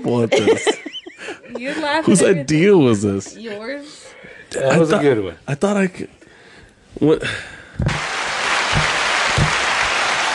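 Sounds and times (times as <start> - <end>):
speech: 0.1 - 0.8, 1.6 - 6.2, 7.0 - 8.0
laughter: 0.2 - 2.0
applause: 8.0 - 10.3.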